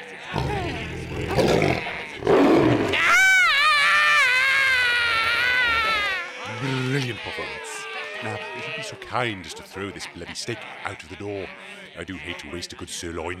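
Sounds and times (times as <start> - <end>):
man groaning cries: 0.0 - 2.1, 3.0 - 10.3
laughter: 0.0 - 12.6
man screaming: 2.8 - 9.5
speech: 9.2 - 13.3.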